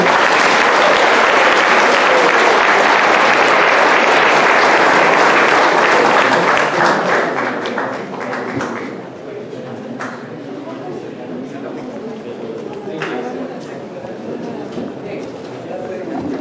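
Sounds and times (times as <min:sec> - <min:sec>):
audience applause: 0:00.0 - 0:09.1.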